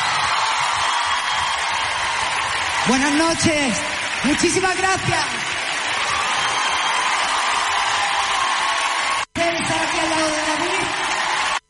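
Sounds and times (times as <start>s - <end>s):
audience applause: 0.0s - 11.6s
speech: 2.9s - 5.4s.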